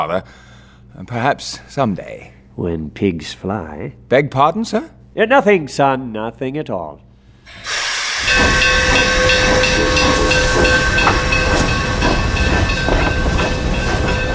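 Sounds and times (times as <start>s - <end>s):
speech: 0.0s - 7.7s
steady high ringing tone: 7.5s - 14.3s
steam train pulling out of station: 7.5s - 14.3s.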